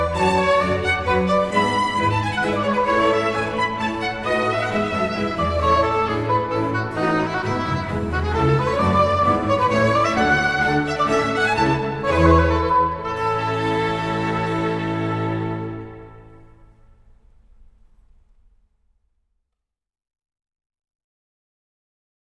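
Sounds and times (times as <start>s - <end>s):
oboe d'amore concerto in A major: 0.0s - 16.7s.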